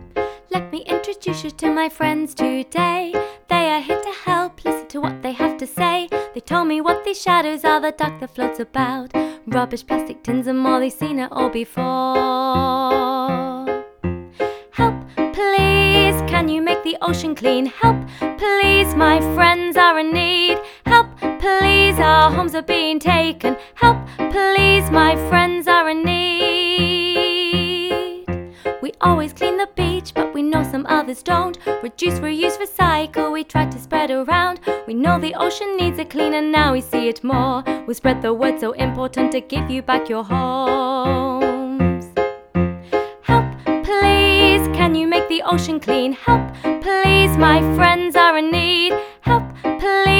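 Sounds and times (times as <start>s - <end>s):
vocals: 0.2s - 50.1s.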